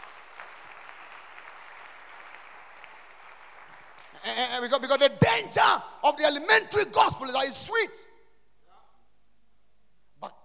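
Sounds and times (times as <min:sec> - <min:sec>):
people clapping their hands: 0:00.0 - 0:05.6
speech: 0:04.3 - 0:08.1.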